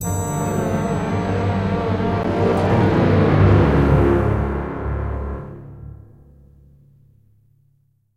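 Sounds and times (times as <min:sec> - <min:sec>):
success stinger: 0:00.0 - 0:06.0.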